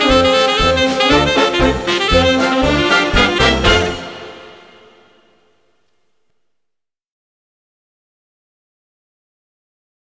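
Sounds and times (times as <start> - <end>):
saxophone: 0.0 - 5.3.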